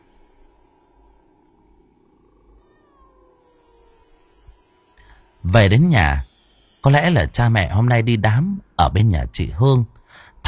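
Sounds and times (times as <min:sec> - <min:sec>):
wild cat meowing at night beside a pagoda tree at a field edge: 0:02.6 - 0:04.3
speech: 0:05.5 - 0:10.4.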